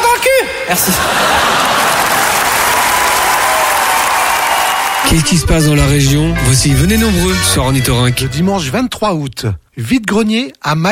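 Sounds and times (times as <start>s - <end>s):
speech: 0.7s - 1.6s, 5.1s - 10.8s
laughter: 0.7s - 2.5s
applause: 1.3s - 5.4s.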